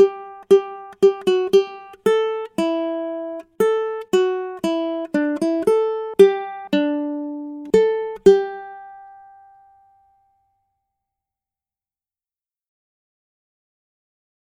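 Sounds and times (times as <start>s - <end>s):
ukulele accompaniment: 0.0s - 10.4s.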